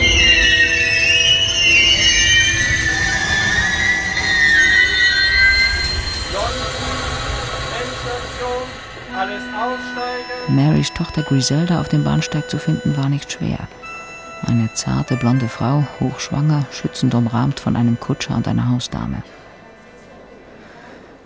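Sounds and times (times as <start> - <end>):
train wheels squealing: 0.0 - 10.5
train arriving at station: 0.0 - 21.2
speech: 10.8 - 19.4.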